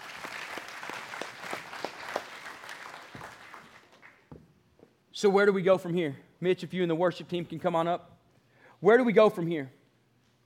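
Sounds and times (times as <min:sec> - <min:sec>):
audience applauding: 0:00.0 - 0:04.3
speech: 0:05.2 - 0:08.1, 0:08.8 - 0:09.8.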